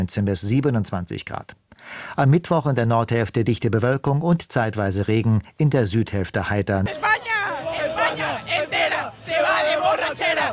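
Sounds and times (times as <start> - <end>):
speech: 0.0 - 7.6
stadium crowd cheering in East Rutherford: 6.9 - 10.5.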